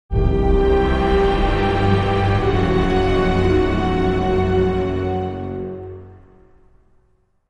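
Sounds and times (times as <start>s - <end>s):
dark ambience: 0.1s - 7.4s.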